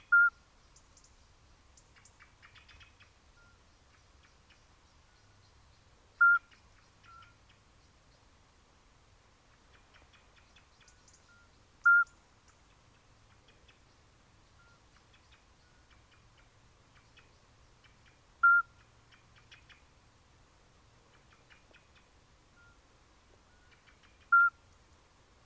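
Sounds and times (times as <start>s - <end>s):
Iberian midwife toad Alytes cisternasii calling: 0.1s - 0.4s, 6.2s - 7.4s, 11.3s - 12.2s, 18.4s - 18.9s, 24.2s - 24.6s.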